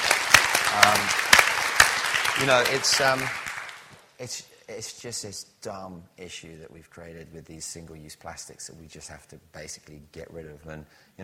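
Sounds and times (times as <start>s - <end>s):
audience round of applause: 0.0s - 4.0s
speech: 0.8s - 1.2s, 2.4s - 3.4s, 4.2s - 11.2s.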